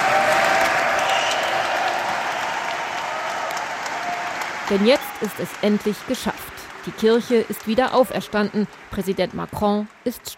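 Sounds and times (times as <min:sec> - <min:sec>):
crowd cheering and applauding in cathedral: 0:00.0 - 0:10.3
speech: 0:04.7 - 0:10.3.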